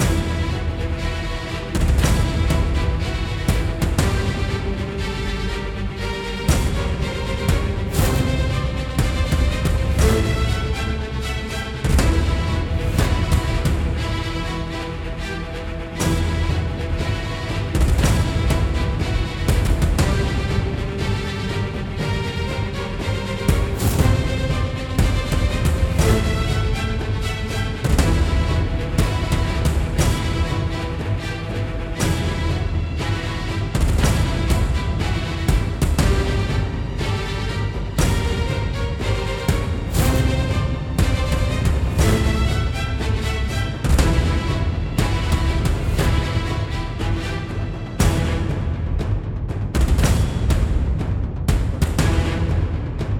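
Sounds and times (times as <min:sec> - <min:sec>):
boss battle game music: 0:00.0 - 0:53.1.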